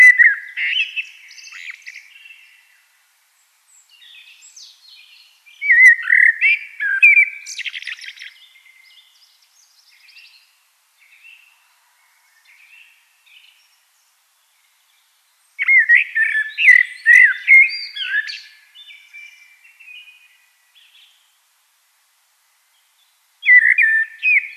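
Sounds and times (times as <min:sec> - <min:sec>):
Eurasian blackbird singing: 0:00.0 - 0:02.8, 0:03.7 - 0:11.5, 0:15.6 - 0:21.2, 0:23.4 - 0:24.5.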